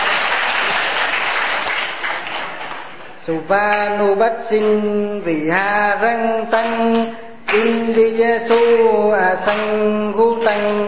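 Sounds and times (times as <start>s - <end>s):
congregation applause at a Buddhist ceremony: 0.0s - 3.0s
speech: 3.3s - 10.8s.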